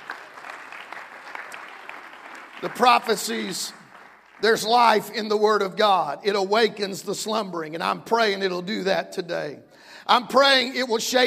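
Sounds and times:
crowd clapping: 0:00.0 - 0:05.2
speech: 0:02.6 - 0:03.8, 0:04.4 - 0:11.2.

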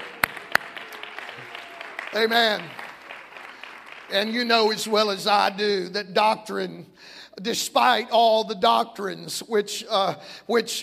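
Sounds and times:
audience clapping: 0:00.0 - 0:04.9
speech: 0:02.1 - 0:02.8, 0:04.1 - 0:10.8.

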